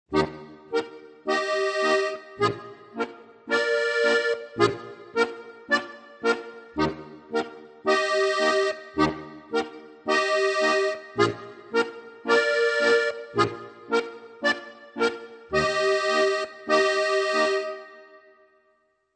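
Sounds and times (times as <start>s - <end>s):
polka music: 0.1s - 18.2s.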